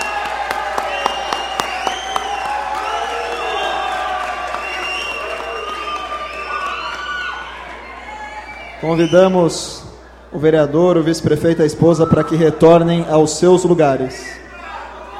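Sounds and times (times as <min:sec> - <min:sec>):
applause for honorees: 0:00.0 - 0:07.9
speech: 0:08.8 - 0:14.4.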